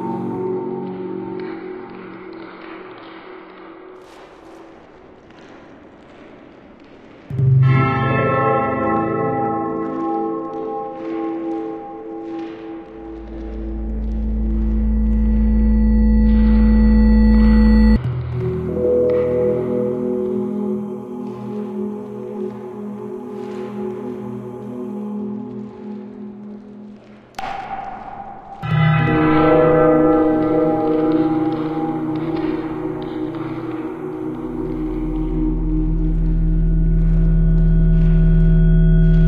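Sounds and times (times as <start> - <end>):
bell: 0.0 - 3.4, 7.3 - 21.9, 27.4 - 39.2
dungeon soundtrack music with bell: 0.0 - 4.6, 7.3 - 27.7, 28.6 - 39.2.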